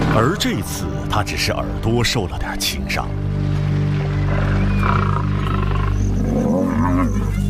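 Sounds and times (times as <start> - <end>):
speech: 0.2 - 3.3, 4.3 - 5.2
male lions roaring and growling: 4.2 - 7.4.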